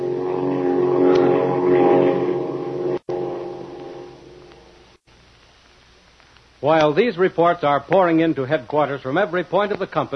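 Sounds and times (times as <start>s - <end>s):
Flying Fortress bomber engines droning in flight: 0.0s - 5.0s
speech: 6.6s - 10.1s.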